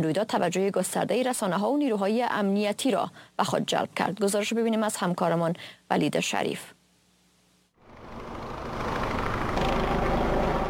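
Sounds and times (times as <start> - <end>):
speech: 0.0 - 6.8
helicopter rotors overhead: 7.8 - 10.6.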